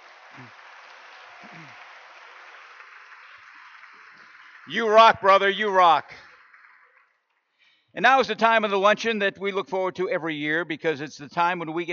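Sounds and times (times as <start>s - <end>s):
audience whoops and cheers: 0.0s - 5.8s
audience applause: 0.0s - 7.3s
speech: 0.4s - 0.6s, 1.4s - 1.8s, 4.7s - 6.2s, 8.0s - 11.9s.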